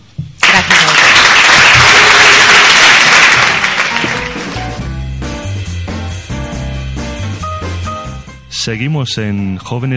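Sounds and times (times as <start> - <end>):
applause: 0.4 - 4.8
speech: 8.7 - 9.9.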